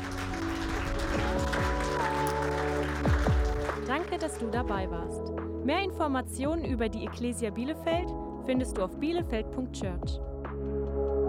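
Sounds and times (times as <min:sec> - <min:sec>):
applause: 0:00.0 - 0:05.1
speech: 0:04.1 - 0:10.3.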